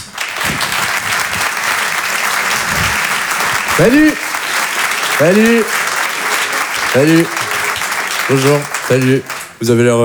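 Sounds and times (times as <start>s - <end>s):
audience applause: 0.0s - 9.8s
laughter: 0.1s - 9.6s
speech: 3.8s - 4.2s, 5.2s - 5.8s, 6.9s - 7.5s, 8.3s - 10.0s.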